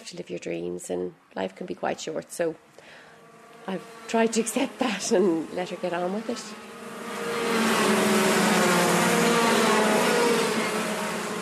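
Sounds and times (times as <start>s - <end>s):
speech: 0.1s - 3.0s, 3.6s - 6.7s
go-kart engines racing around a track at Watergrass Hill, Cork: 3.2s - 11.3s.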